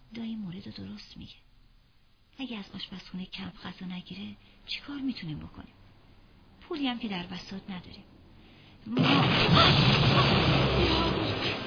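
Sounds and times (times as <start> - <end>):
speech: 0.1 - 1.5, 2.4 - 5.8, 6.7 - 8.1, 8.8 - 11.0
rocket explosion: 9.0 - 11.6.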